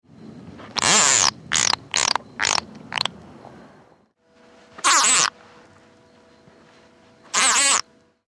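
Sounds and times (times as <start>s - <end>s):
Spea multiplicata calling: 0.7s - 3.2s, 4.8s - 5.4s, 7.3s - 7.9s.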